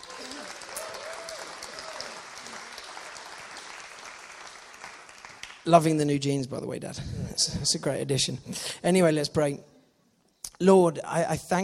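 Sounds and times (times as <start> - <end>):
audience applause: 0.0 - 5.7
speech: 5.7 - 9.7, 10.6 - 11.6.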